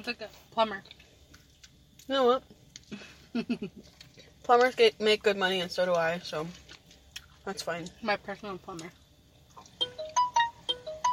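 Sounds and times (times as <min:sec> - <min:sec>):
speech: 0:00.0 - 0:01.0, 0:02.1 - 0:06.7, 0:07.4 - 0:09.0
phone ringtone: 0:09.8 - 0:11.1.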